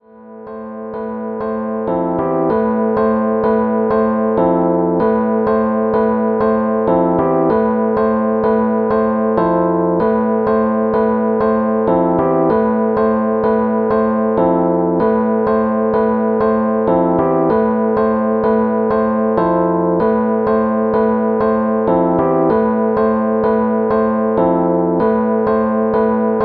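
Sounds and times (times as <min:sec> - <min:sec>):
Rhodes electric piano hip hop chords: 0:00.0 - 0:26.4.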